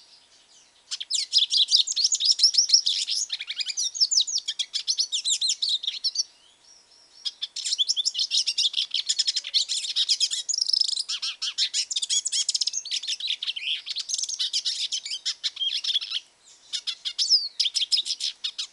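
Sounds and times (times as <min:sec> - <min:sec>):
hooded siskin twittering song: 0:00.0 - 0:18.7.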